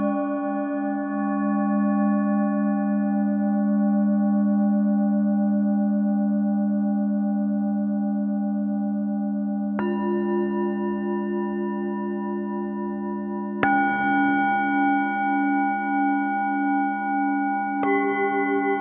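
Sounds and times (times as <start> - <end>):
bells pad: 0.0 - 18.7.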